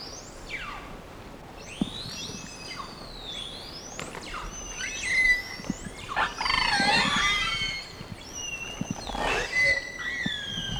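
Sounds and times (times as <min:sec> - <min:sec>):
whale calls of sweeping squeals and whistles: 0:05.0 - 0:10.7.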